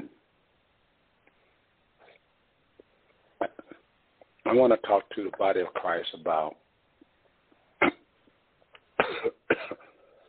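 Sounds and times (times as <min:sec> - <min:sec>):
throat sounds: 0:03.4 - 0:03.9
speech: 0:04.5 - 0:06.6
person coughing after a drink went down the wrong pipe: 0:07.8 - 0:08.0, 0:09.0 - 0:10.0.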